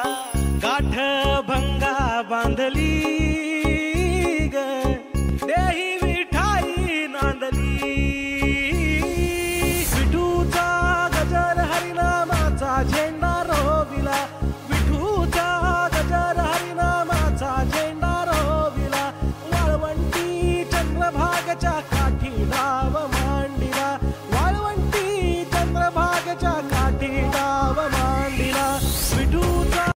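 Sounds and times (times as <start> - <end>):
bhakti devotional song ringtone: 0.0 - 29.9.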